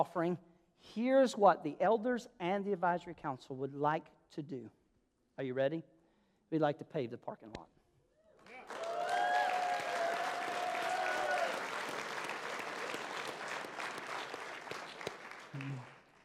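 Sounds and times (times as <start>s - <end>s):
speech: 0.0s - 4.8s, 5.4s - 5.9s, 6.5s - 7.8s, 15.6s - 15.9s
audience clapping: 8.4s - 16.2s.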